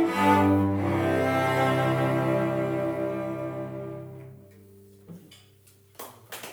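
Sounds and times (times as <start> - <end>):
minuet piece in C: 0.0 - 4.9.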